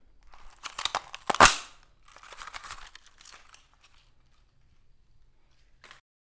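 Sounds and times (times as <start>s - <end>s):
Christmas cracker popping: 0.2s - 4.7s.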